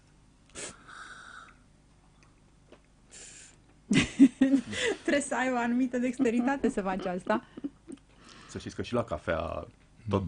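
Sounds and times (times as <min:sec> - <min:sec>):
person drawing air through teeth while tasting wine: 0:00.5 - 0:01.6, 0:03.1 - 0:03.6
speech: 0:04.4 - 0:07.6, 0:08.5 - 0:10.2.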